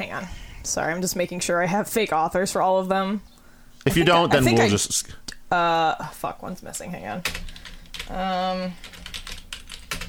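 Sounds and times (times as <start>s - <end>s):
speech: 0.1s - 9.0s
typing on a computer keyboard: 7.2s - 8.2s, 8.8s - 10.0s.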